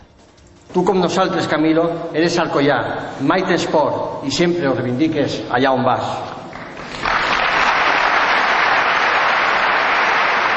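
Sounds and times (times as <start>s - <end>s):
speech: 0.7s - 6.4s
audience applause: 6.5s - 10.5s.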